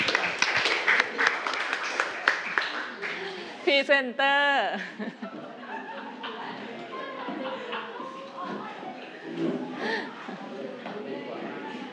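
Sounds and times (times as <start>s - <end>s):
classroom students clapping for a student group: 0.0s - 3.4s
speech: 3.8s - 5.2s
laughter: 4.8s - 10.8s.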